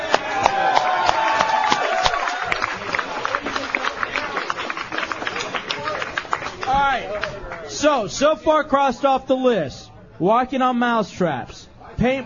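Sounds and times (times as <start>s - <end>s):
audience applause: 0.0s - 7.7s
speech: 8.0s - 12.2s.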